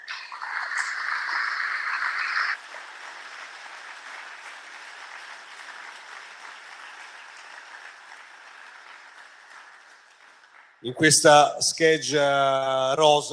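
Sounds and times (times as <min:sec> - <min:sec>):
crowd noise hiss: 0:00.0 - 0:09.5
audience applause: 0:00.0 - 0:10.9
speech: 0:10.8 - 0:13.3.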